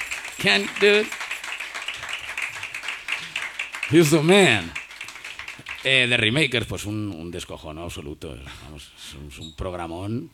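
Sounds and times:
crowd applauding with many hands clapping: 0.0 - 6.5
speech: 0.4 - 1.2, 3.9 - 4.8, 5.8 - 10.3.

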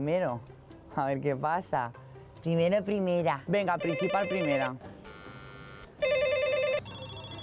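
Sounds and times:
speech: 0.0 - 4.9
apartment intercom buzzer ringing: 3.8 - 7.4.

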